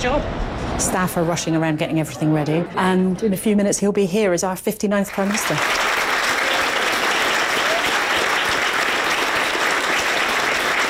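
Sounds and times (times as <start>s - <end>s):
speech: 0.0s - 5.8s
clapping: 5.1s - 10.8s.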